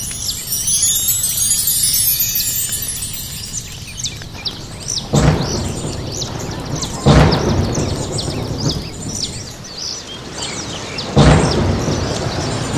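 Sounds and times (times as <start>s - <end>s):
high bird chirps: 0.0s - 10.1s
steady rain: 0.0s - 12.7s.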